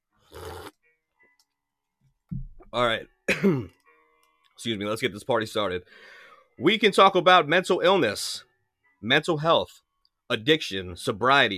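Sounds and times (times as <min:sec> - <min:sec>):
speech: 0:02.7 - 0:03.8, 0:04.6 - 0:11.5
throat clearing: 0:03.3 - 0:03.8.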